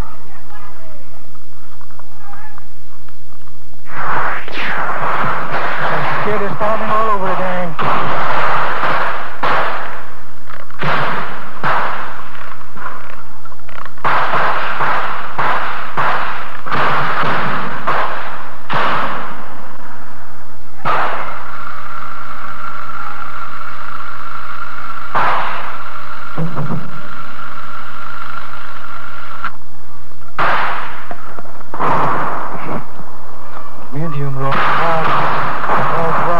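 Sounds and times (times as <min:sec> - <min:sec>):
steady low rumble: 0:00.0 - 0:14.0, 0:15.1 - 0:34.0
mortar fire and explosions in combat: 0:03.8 - 0:29.5, 0:30.2 - 0:36.3.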